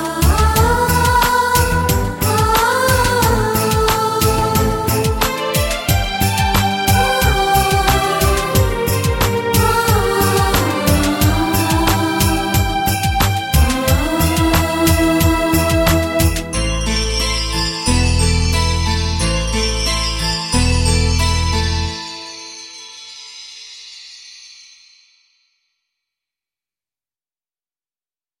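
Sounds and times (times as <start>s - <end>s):
emotional guitar theme: 0.9s - 22.2s.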